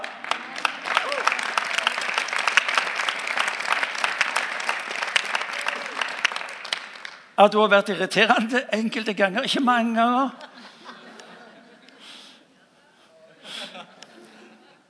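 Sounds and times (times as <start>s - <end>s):
audience applause: 0.0s - 7.2s
speech: 7.4s - 10.4s
laughter: 10.4s - 14.8s.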